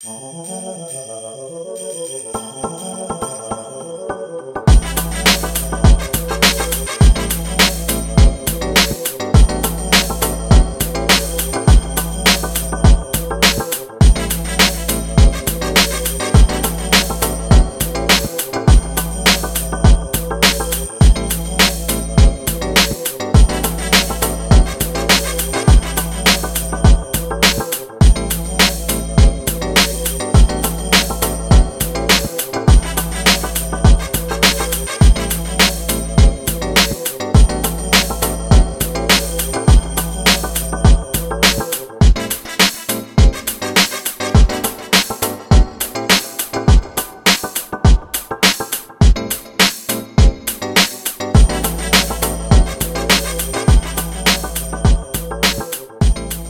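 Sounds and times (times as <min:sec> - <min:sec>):
rap hip hop instrumental: 0:00.0 - 0:56.4.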